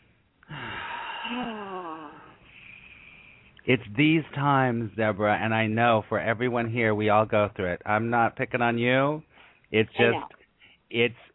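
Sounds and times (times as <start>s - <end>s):
deep breath let out as a long breathy sigh: 0.5s - 3.4s
speech: 1.3s - 2.2s, 3.6s - 11.3s.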